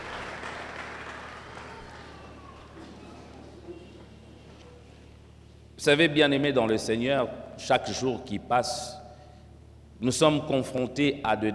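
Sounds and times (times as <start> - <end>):
church congregation applauding to acclaim the word of God: 0.0 - 3.5
speech: 5.8 - 9.0, 10.0 - 11.5.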